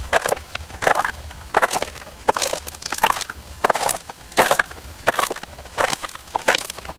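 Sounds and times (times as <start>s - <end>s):
footsteps on gravel: 0.0s - 6.9s.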